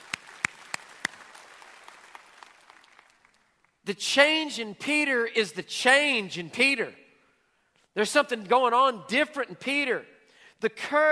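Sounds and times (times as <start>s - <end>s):
audience applause: 0.0s - 3.5s
speech: 3.9s - 7.0s, 8.0s - 11.0s.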